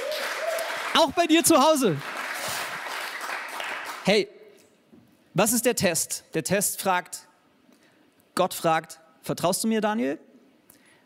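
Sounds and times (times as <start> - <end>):
audience clapping: 0.0 - 4.1
speech: 1.0 - 2.1, 4.0 - 4.4, 5.4 - 7.3, 8.4 - 10.3.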